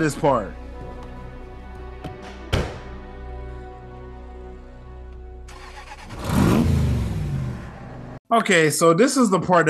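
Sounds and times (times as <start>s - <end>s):
speech: 0.0s - 0.6s, 8.3s - 9.6s
car engine starting, idling and accelerating away: 5.5s - 8.2s.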